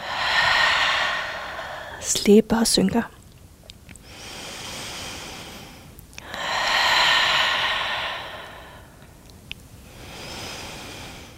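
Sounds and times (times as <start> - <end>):
breathing: 0.0 - 2.1, 4.0 - 9.2, 9.8 - 11.3
speech: 2.1 - 3.2.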